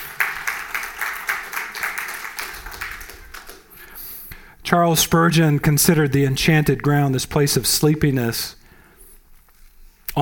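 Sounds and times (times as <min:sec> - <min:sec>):
audience applause: 0:00.0 - 0:03.8
speech: 0:04.7 - 0:08.6.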